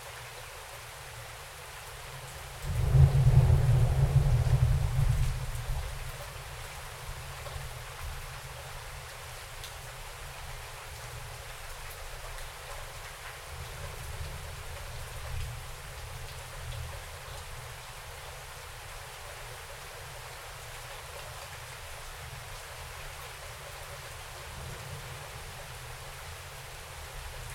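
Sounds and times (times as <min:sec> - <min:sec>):
rain outside: 0:00.0 - 0:27.5
thunder outside: 0:02.7 - 0:05.8.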